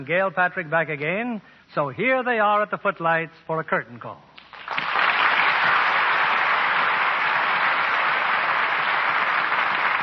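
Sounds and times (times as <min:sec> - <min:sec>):
speech: 0:00.0 - 0:04.8
crowd applauding: 0:04.4 - 0:10.0.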